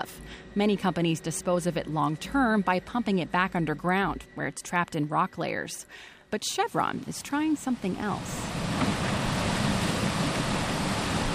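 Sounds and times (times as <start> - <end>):
speech: 0.6 - 8.7
water gushing from a 40-inch pipe: 8.2 - 11.3.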